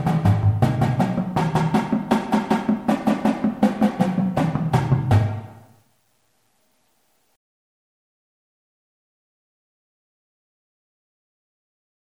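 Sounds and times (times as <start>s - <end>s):
marching drum warm-ups: 0.0s - 5.6s.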